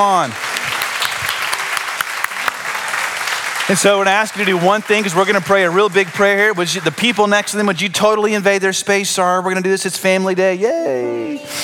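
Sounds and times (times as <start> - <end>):
speech: 0.0 - 0.5, 3.7 - 11.6
cheering: 0.0 - 7.7
large audience applause: 0.0 - 8.1.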